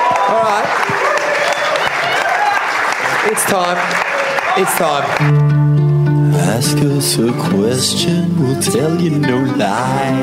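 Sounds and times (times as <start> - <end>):
audience applause: 0.0 - 5.3
speech: 0.3 - 1.0, 3.3 - 10.2.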